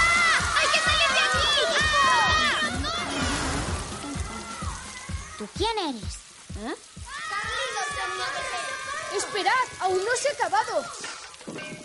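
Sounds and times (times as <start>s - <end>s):
water gushing from a burst water pipe: 0.0s - 11.8s
low pulsing: 2.6s - 5.3s
speech: 5.5s - 6.9s, 8.1s - 11.0s.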